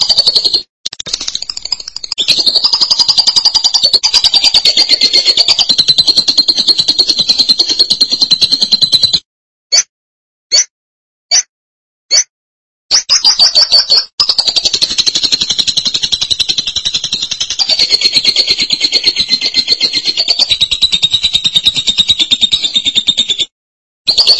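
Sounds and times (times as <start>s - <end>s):
lovebird sharp chips: 0.0s - 9.9s, 10.5s - 10.7s, 12.1s - 12.3s, 12.9s - 23.5s, 24.1s - 24.3s
lovebird shrill chatter: 1.2s - 9.2s, 12.9s - 23.5s.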